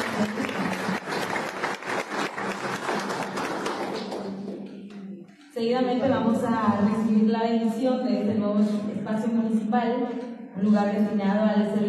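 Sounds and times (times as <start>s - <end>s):
audience applause: 0.0s - 4.6s
speech: 5.6s - 11.8s.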